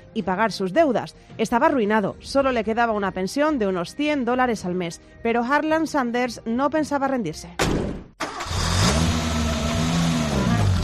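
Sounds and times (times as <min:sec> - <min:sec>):
speech: 0:00.2 - 0:07.9
car engine revving as the vehicle pulls away: 0:08.2 - 0:10.8.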